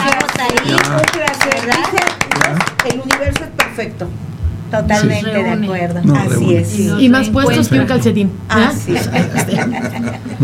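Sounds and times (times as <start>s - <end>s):
scattered hand clapping: 0.0s - 3.8s
speech: 0.5s - 10.4s
voices talking and laughing: 4.8s - 10.4s.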